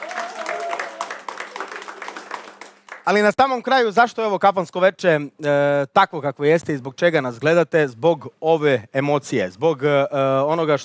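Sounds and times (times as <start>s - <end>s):
audience applause at a kafana-style evening music show: 0.0s - 3.3s
speech: 3.1s - 10.8s.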